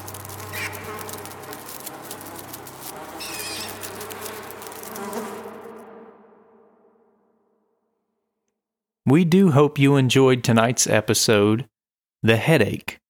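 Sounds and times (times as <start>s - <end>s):
insect-like crawling and buzzing inside skull: 0.0s - 7.2s
speech: 9.1s - 13.0s.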